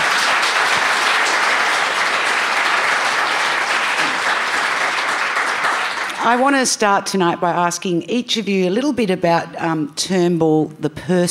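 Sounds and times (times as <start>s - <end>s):
audience applause welcoming guests: 0.0s - 6.3s
speech: 6.2s - 11.3s.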